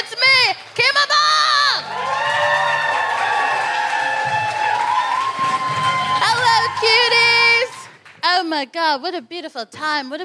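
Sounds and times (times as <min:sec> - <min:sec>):
audience clapping: 0:00.0 - 0:08.2
audience whooping and cheering: 0:01.4 - 0:08.0
speech: 0:08.6 - 0:10.2.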